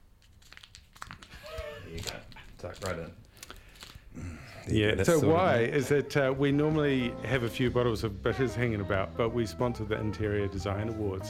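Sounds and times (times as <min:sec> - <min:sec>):
A4 paper sheet being crumpled: 0:00.0 - 0:04.1
speech: 0:01.9 - 0:03.2, 0:04.2 - 0:11.2.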